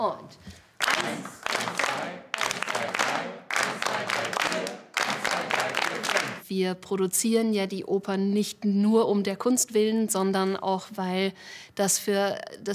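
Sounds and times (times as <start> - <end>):
speech: 0.0 - 2.2, 6.5 - 12.7
group clapping together in rhythm: 0.6 - 6.4.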